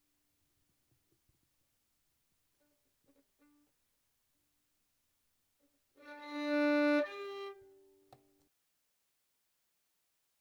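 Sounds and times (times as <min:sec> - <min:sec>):
violin: 0:06.0 - 0:08.4.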